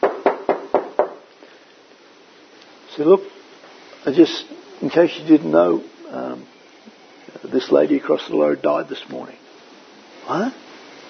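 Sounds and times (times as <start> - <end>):
knocking on a door: 0.0 - 1.2
speech: 3.0 - 3.4, 4.0 - 6.6, 7.5 - 9.4, 10.3 - 10.6.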